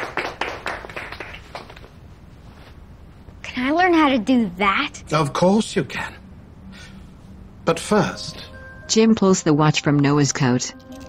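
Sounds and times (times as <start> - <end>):
two people applauding: 0.0 - 1.9
speech: 3.6 - 6.2, 7.7 - 10.9.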